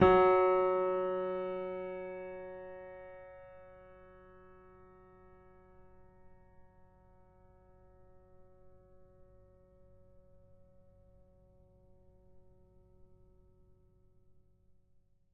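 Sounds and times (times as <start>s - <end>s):
F sharp 5 piano note: 0.0s - 3.4s.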